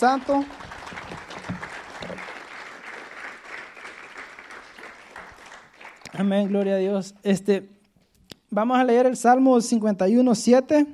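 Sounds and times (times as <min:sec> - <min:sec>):
speech: 0:00.0 - 0:00.7, 0:06.2 - 0:07.8, 0:08.5 - 0:10.9
audience applause: 0:00.0 - 0:06.7.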